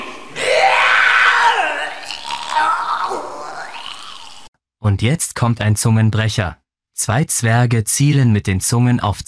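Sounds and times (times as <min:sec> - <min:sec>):
voice imitating vomiting with retching and gagging: 0:00.3 - 0:04.5
speech: 0:04.9 - 0:09.2.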